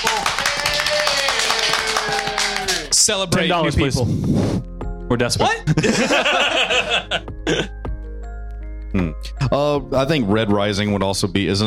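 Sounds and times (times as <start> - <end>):
audience applause for newcomers: 0.0 - 3.1
speech: 3.1 - 7.8, 9.0 - 11.6
laughter: 5.6 - 7.7.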